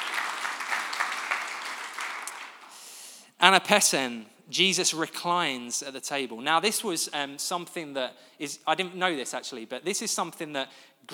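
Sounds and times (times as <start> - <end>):
audience round of applause: 0.0 - 2.8
speech: 3.4 - 11.1.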